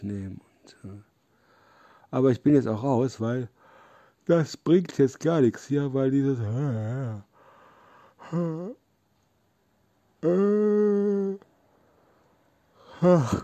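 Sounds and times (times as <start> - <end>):
speech: 0.0 - 1.1, 2.1 - 3.6, 4.3 - 7.3, 8.3 - 8.8, 10.2 - 11.5, 13.0 - 13.4
faint breathing: 0.4 - 2.1, 3.5 - 4.2, 7.2 - 8.5
person giving voiced yawns: 8.2 - 8.8, 10.2 - 11.5, 12.8 - 13.4.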